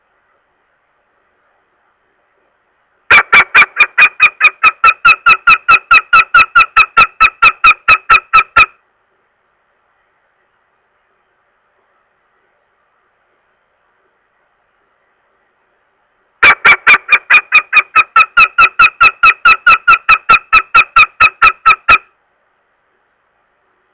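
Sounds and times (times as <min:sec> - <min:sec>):
northern goshawk uttering harsh nasal kek calls: 0:03.1 - 0:08.8, 0:16.4 - 0:22.1.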